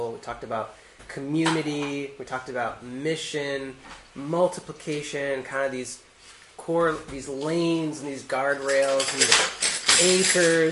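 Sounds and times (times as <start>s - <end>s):
speech: 0.2s - 10.7s
pile of pencils tumbling and scattering: 8.4s - 10.7s.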